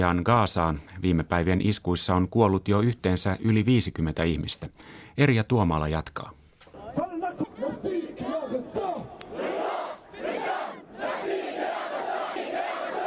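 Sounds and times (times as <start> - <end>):
speech: 0.0 - 6.4
protesters chanting outside an embassy: 6.8 - 13.0.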